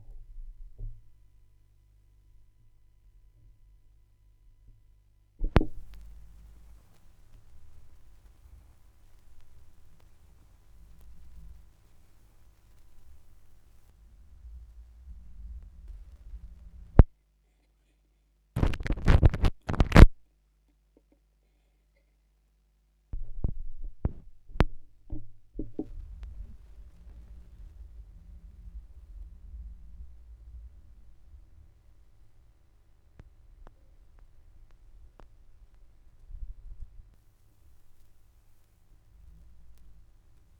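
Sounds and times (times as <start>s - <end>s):
vinyl record noise: 5.4s - 17.1s, 18.6s - 20.2s, 23.2s - 40.5s.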